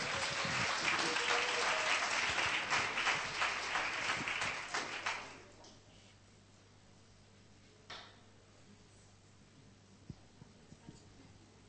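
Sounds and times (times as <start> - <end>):
crowd applause: 0.0 - 5.5.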